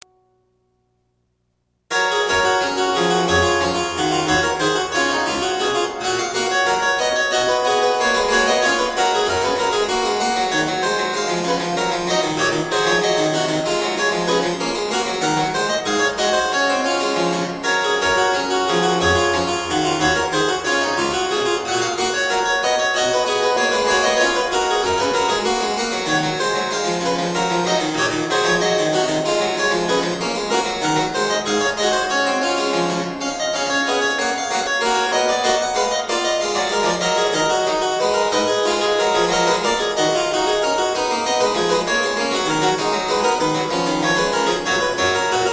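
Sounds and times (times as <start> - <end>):
keyboard piece: 1.9 - 45.5.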